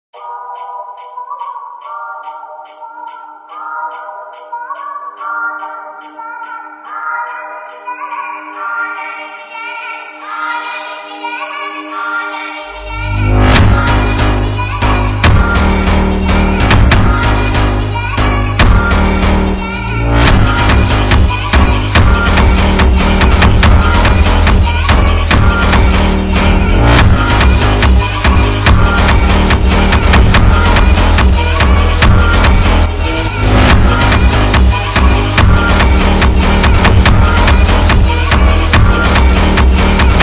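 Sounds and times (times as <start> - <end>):
sped up funk music: 12.8 - 40.2.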